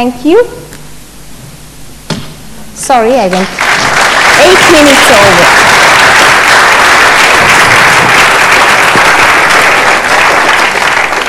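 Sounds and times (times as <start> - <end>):
speech: 0.0 - 0.6, 2.8 - 5.8
sustained applause from a sizeable audience: 3.4 - 11.2.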